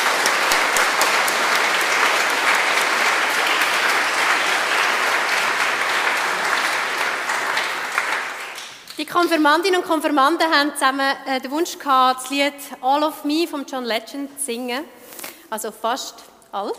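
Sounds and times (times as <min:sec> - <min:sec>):
crowd applause: 0:00.0 - 0:08.9
speech: 0:09.1 - 0:16.7.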